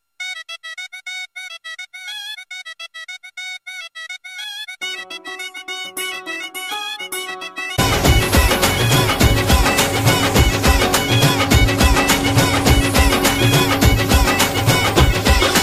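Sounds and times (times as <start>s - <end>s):
tune: 4.8s - 15.6s.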